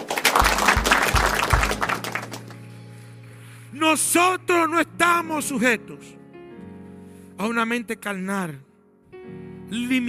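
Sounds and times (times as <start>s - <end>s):
audience applause: 0.0s - 2.6s
speech: 3.9s - 6.2s, 7.4s - 8.7s, 9.3s - 10.0s.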